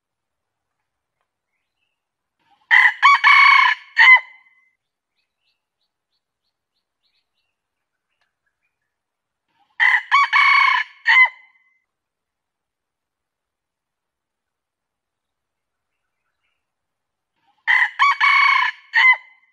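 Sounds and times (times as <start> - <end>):
junglefowl crowing: 2.7 - 4.4, 9.8 - 11.5, 17.6 - 19.4.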